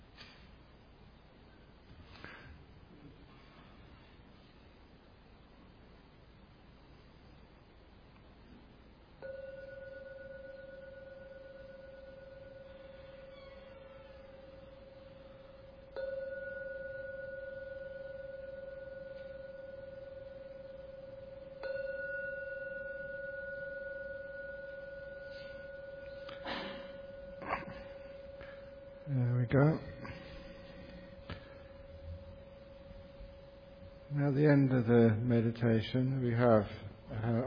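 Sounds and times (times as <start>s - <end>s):
meditation gong ringing: 9.2s - 33.5s
speech: 29.5s - 29.9s, 34.3s - 37.4s.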